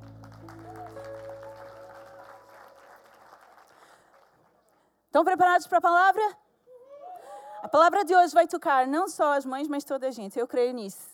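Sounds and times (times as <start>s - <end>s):
low musical chord: 0.0s - 2.9s
audience applause: 0.0s - 4.8s
speech: 5.2s - 6.4s, 7.7s - 11.1s.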